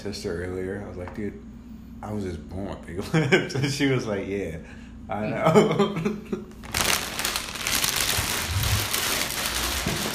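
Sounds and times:
speech: 0.0s - 6.7s
crunching barbecue potato chips being chewed: 6.6s - 10.1s.

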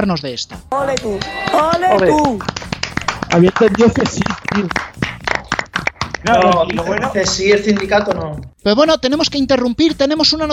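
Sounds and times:
speech: 0.0s - 2.7s, 3.3s - 5.1s, 6.2s - 10.5s
applause: 0.9s - 8.4s.

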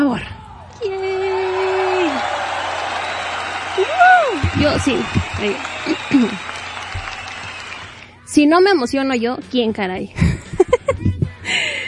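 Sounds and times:
crowd applause: 0.8s - 8.1s
crowd whistles and whoops: 1.2s - 8.1s
laughter: 3.7s - 6.6s, 10.2s - 11.8s
speech: 4.6s - 6.6s, 8.4s - 10.3s.

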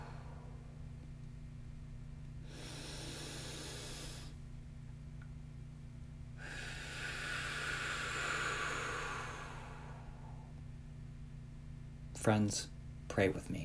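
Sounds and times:
deep breaths during a guided prayer: 0.0s - 0.9s, 2.4s - 4.5s, 6.4s - 10.7s
steady low hum: 0.0s - 13.6s
speech: 12.2s - 13.6s.

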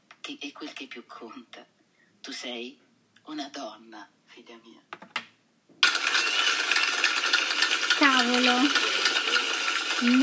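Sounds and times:
speech: 0.3s - 5.1s, 8.2s - 9.0s, 10.0s - 10.2s
applause: 5.8s - 10.2s.

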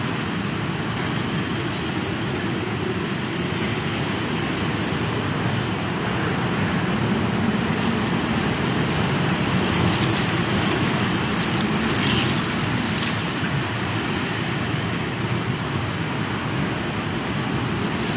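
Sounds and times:
strong wind at the start of the rainy season: 0.0s - 18.1s.

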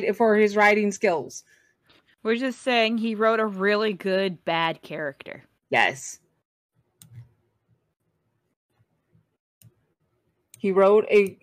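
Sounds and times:
speech: 0.0s - 1.6s, 2.2s - 6.2s, 10.6s - 11.4s
computer mouse clicks while using Hero Forge: 7.0s - 7.4s.

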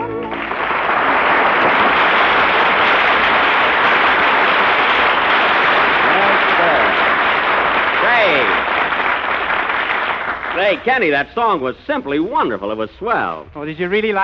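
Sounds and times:
studio audience applause: 0.2s - 11.4s
speech: 10.8s - 14.2s.

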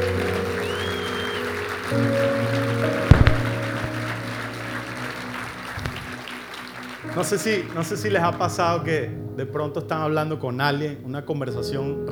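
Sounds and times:
loud audience applause: 0.0s - 8.4s
speech: 1.9s - 2.3s, 7.2s - 12.0s.

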